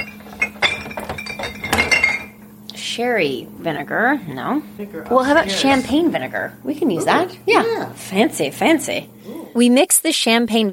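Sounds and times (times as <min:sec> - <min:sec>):
glass jars clinking in fridge: 0:00.0 - 0:02.5
speech: 0:03.0 - 0:10.7.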